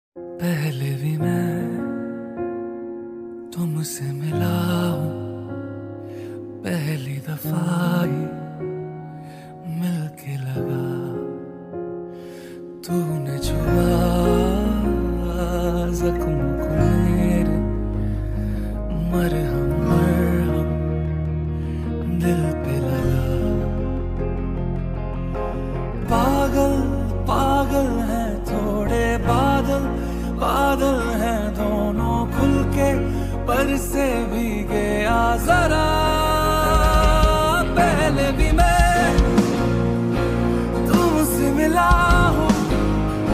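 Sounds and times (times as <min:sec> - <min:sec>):
slowed reverb lofi remix ringtone: 0:00.2 - 0:43.3.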